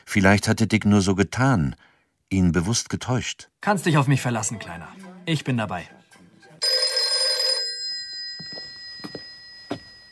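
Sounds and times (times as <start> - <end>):
speech: 0.1 - 6.0
electric telephone ringing at night: 6.6 - 10.0.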